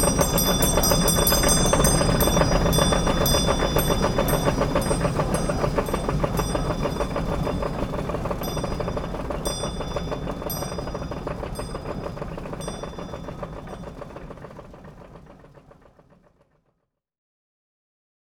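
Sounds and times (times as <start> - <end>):
mill ambience in Ardeche: 0.0 - 14.4.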